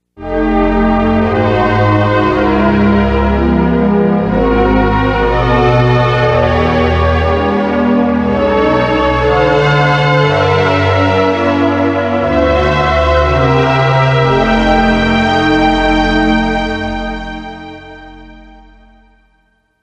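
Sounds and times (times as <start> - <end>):
chord progression: 0.2 - 19.4.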